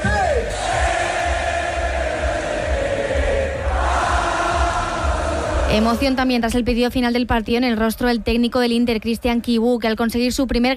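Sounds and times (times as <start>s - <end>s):
football fans cheering title celebration in square: 0.0s - 6.2s
speech: 5.7s - 10.7s.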